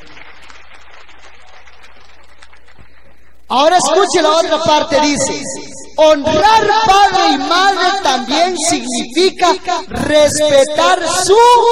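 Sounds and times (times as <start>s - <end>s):
audience applause: 0.0s - 3.2s
speech: 3.5s - 11.7s.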